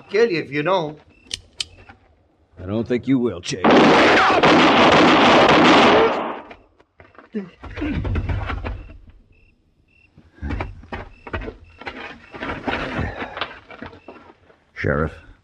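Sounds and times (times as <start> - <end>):
speech: 0.1 - 1.1, 2.6 - 6.2, 7.3 - 8.5, 14.8 - 15.4
gunshot blast in a radio western drama: 3.6 - 6.5.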